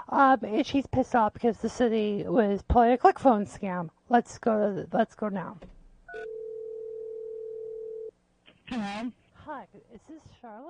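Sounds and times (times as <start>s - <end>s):
speech: 0.1s - 6.3s, 8.7s - 10.6s
telephone dial tone before a call: 6.1s - 8.1s.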